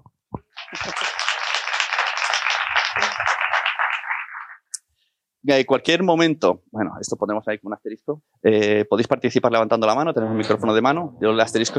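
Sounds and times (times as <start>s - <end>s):
audience applause: 0.5s - 4.7s
laughter: 0.6s - 1.3s
speech: 5.4s - 11.7s.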